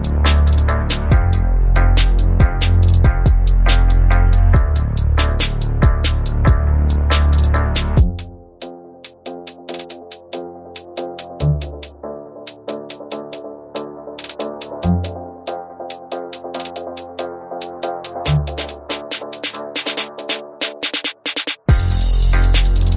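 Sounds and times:
percussion: 0.0s - 8.4s, 9.0s - 15.2s, 15.9s - 22.9s
bass: 0.0s - 8.6s, 11.4s - 11.8s, 14.8s - 15.2s, 18.2s - 18.7s, 21.7s - 22.9s.

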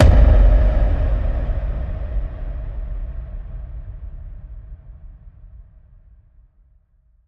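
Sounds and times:
quantum space hit: 0.0s - 5.0s.

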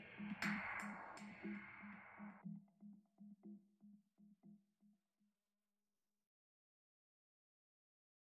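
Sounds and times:
percussion: 0.0s - 3.6s.

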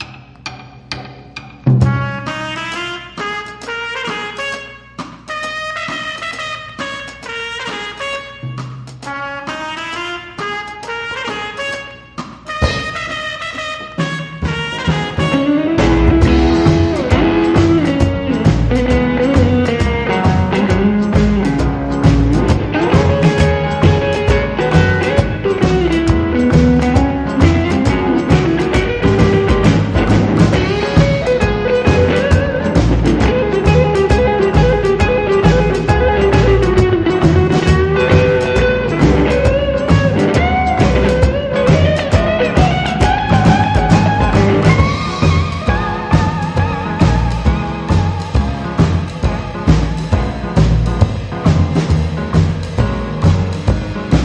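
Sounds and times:
instrumental music: 0.0s - 54.2s.

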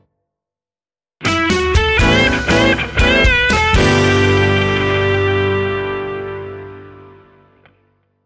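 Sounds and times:
1970s rock music: 1.2s - 7.6s.

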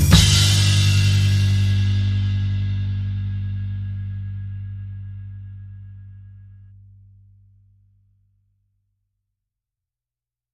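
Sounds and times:
drums: 0.0s - 5.0s
bass: 0.0s - 9.5s.

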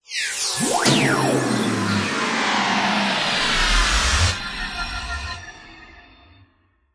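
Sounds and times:
descending tone shift: 0.5s - 5.8s.

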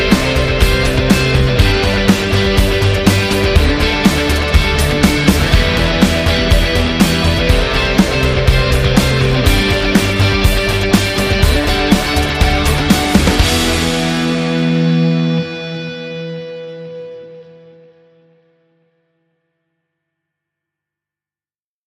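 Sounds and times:
synth arpeggiator: 0.0s - 16.1s.

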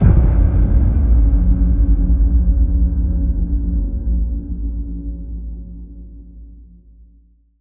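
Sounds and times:
tonal netherworld hit: 0.0s - 4.7s.

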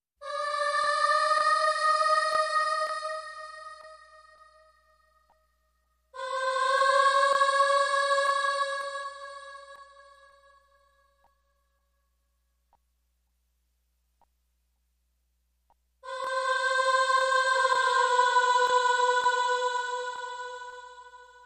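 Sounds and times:
evil children's choir: 0.2s - 5.4s, 6.1s - 11.5s, 16.0s - 21.4s.

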